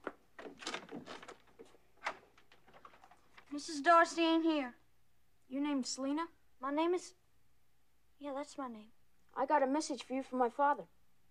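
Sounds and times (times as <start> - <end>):
door being opened: 0.0 - 3.2
speech: 3.6 - 4.8, 5.5 - 7.2, 8.2 - 11.0.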